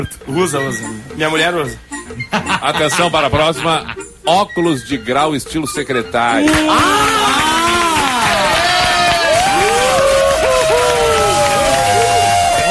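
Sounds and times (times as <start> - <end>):
speech: 0.0 - 7.4
laughter: 2.2 - 4.2
crowd cheering and shouting: 6.5 - 12.7
audience applause: 6.7 - 12.7.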